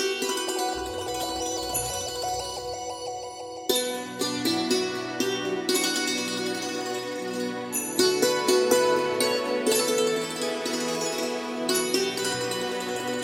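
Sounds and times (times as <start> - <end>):
classical music: 0.1 - 13.2.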